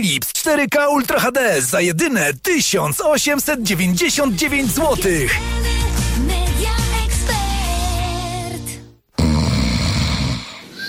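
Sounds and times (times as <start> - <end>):
speech: 0.0 - 5.8
brief musical passage: 3.2 - 8.2
person snoring loudly and raspily: 9.1 - 10.8.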